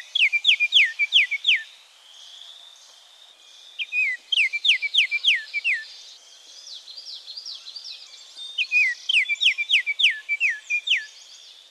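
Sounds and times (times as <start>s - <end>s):
Baltimore oriole song of clear hooked whistled notes: 0.0s - 1.7s, 3.8s - 5.9s, 8.6s - 11.1s.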